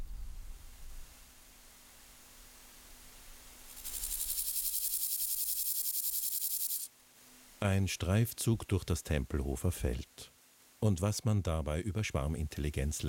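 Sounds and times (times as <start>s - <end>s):
grasshoppers chirping at night on the Tempelhofer Feld: 3.7s - 6.9s
speech: 7.6s - 13.0s.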